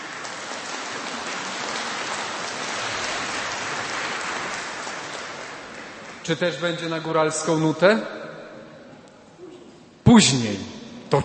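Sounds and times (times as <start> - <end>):
crowd applauding: 0.0 - 7.2
speech: 6.3 - 8.2, 10.2 - 11.2.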